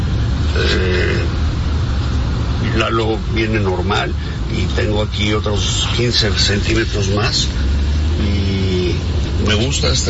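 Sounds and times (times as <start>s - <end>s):
car with open exhaust passing: 0.0s - 10.0s
speech: 0.6s - 1.1s, 2.8s - 10.0s.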